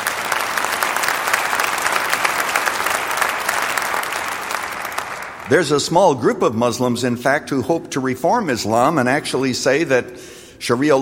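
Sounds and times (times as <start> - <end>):
crowd audience applause: 0.0 - 5.8
speech: 5.5 - 10.9.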